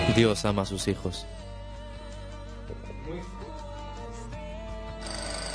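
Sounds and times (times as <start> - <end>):
speech: 0.2 - 1.4
telephone ringing: 5.0 - 5.5.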